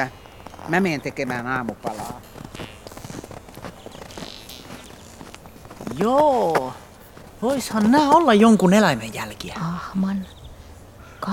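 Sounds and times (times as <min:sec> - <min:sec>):
speech: 0:00.0 - 0:02.7, 0:06.0 - 0:06.8, 0:07.4 - 0:10.4
shoes clattering footsteps: 0:00.2 - 0:08.6.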